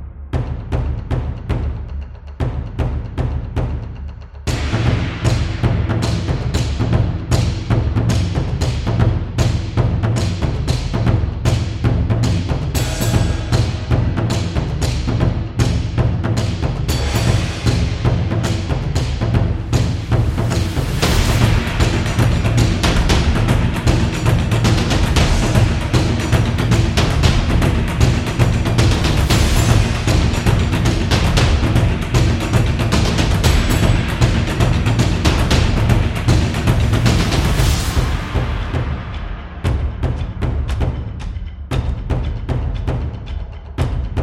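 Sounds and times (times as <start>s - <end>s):
Japanese drum: 0.3s - 44.2s.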